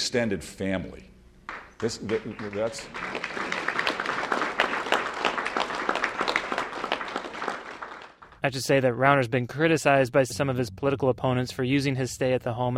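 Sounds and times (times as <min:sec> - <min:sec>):
speech: 0:00.1 - 0:01.1, 0:01.8 - 0:03.5, 0:08.4 - 0:12.7
crowd applause: 0:01.5 - 0:08.4.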